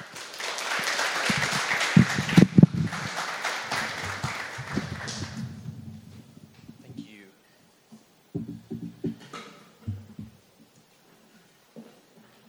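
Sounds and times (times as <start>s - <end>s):
audience applause: 0.0s - 6.1s.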